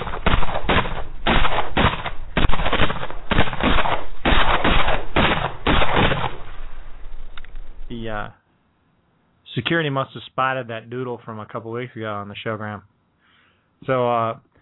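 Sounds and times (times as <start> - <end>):
gunfire in a battle: 0.0 - 6.7
speech: 8.2 - 8.4, 9.6 - 12.9, 13.8 - 14.5.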